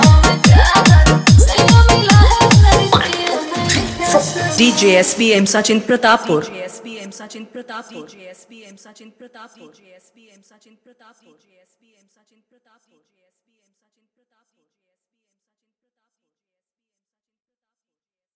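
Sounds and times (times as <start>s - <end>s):
Bhojpuri remix song: 0.0s - 5.6s.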